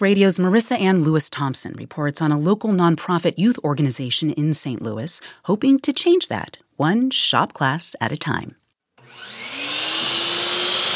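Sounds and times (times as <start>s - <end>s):
speech: 0.0s - 9.4s
circular saw running in a workshop: 9.0s - 10.9s.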